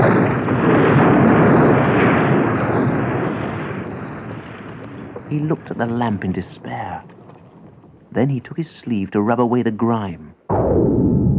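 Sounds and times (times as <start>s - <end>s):
ground heaving and cave stone rolling back sound effect: 0.0s - 8.3s, 10.5s - 11.3s
speech: 5.3s - 7.1s, 8.1s - 11.3s.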